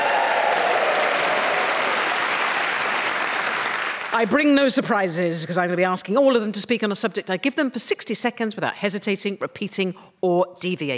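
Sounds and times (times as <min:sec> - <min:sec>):
studio audience cheering: 0:00.0 - 0:04.2
studio audience applause: 0:00.0 - 0:04.4
speech: 0:04.1 - 0:10.9.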